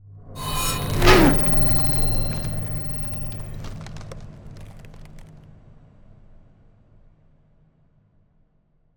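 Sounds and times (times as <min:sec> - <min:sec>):
ice spell cold whooshes: 0:00.4 - 0:03.6.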